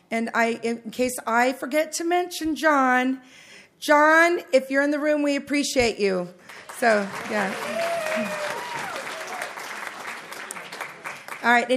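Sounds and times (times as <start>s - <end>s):
speech: 0.1s - 8.4s, 11.4s - 11.7s
audience clapping: 6.5s - 11.7s.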